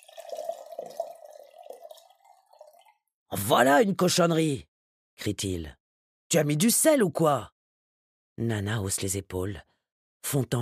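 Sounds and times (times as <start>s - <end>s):
tea being poured into a cup: 0.0s - 3.0s
speech: 3.4s - 7.5s, 8.4s - 10.6s.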